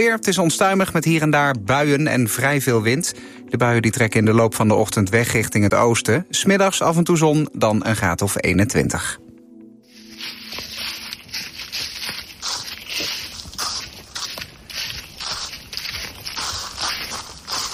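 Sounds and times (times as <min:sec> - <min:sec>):
speech: 0:00.0 - 0:09.2
footsteps crunching through thick dry leaves: 0:09.9 - 0:17.7.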